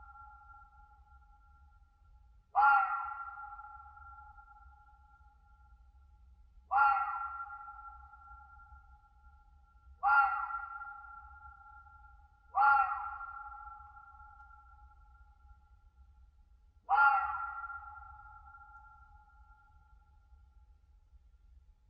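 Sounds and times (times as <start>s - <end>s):
red fox screaming in winter in a European mountain forest: 2.6s - 3.3s, 6.7s - 7.4s, 10.0s - 10.8s, 12.6s - 13.4s, 16.9s - 17.9s.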